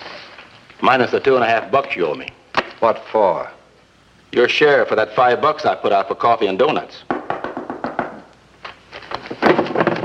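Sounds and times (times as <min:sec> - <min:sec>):
speech: 0:00.8 - 0:03.6, 0:04.3 - 0:07.1
knocking on a wooden door: 0:07.1 - 0:08.3.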